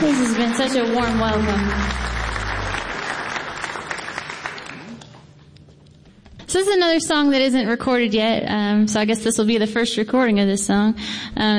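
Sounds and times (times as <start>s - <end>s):
speech: 0.0s - 2.2s, 6.5s - 11.5s
audience applause for the people at Mount Stage: 0.0s - 5.2s.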